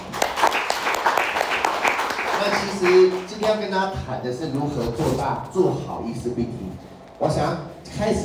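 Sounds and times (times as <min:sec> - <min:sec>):
audience applause: 0:00.0 - 0:03.6
speech: 0:02.6 - 0:08.2.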